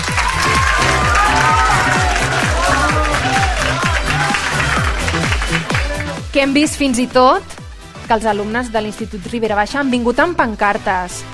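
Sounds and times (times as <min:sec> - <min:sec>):
crowd cheering: 0:00.0 - 0:06.2
strong applause from large audience: 0:00.0 - 0:06.2
speech: 0:06.4 - 0:07.5, 0:08.1 - 0:11.3.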